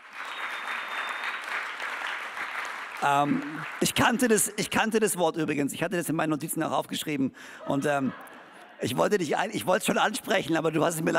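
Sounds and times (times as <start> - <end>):
audience applause: 0.0 - 4.3
speech: 3.0 - 11.1.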